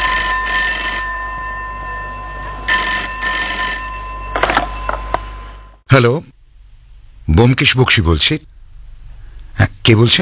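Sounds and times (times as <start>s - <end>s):
telephone ringing: 0.0s - 5.8s
low steady hum: 0.0s - 10.1s
speech: 6.0s - 6.4s, 7.3s - 8.5s, 9.6s - 10.1s.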